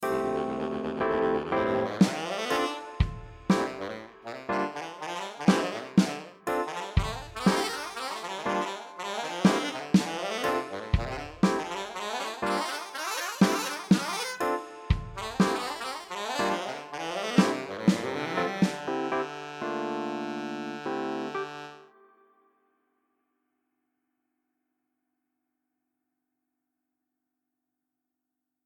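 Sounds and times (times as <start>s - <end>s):
saxophone: 0.0s - 22.5s.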